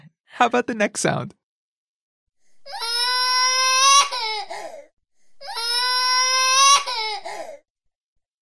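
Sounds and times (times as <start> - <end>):
speech: 0.4 - 1.4
child crying: 2.7 - 4.8, 5.4 - 7.6.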